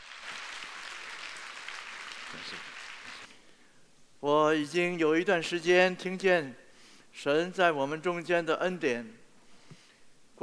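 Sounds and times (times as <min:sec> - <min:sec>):
audience applause: 0:00.0 - 0:03.3
speech: 0:02.3 - 0:02.8, 0:04.2 - 0:06.6, 0:07.2 - 0:09.2.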